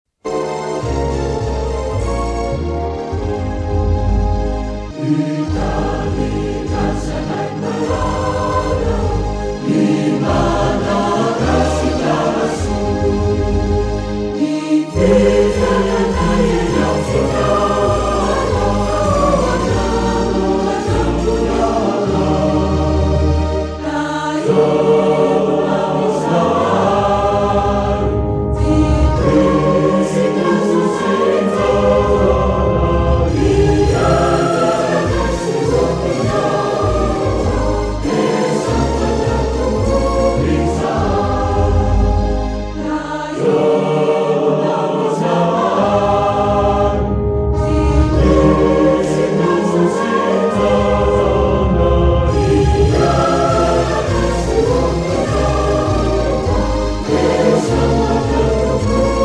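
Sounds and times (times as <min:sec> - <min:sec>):
national anthem sung version: 0:00.2 - 0:59.2.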